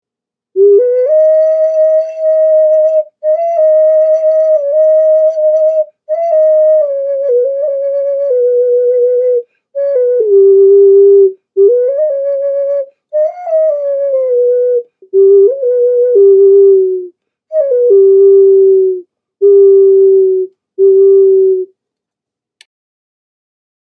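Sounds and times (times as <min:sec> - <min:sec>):
ancient flutes: 0:00.6 - 0:21.7
ocarina: 0:00.6 - 0:21.7.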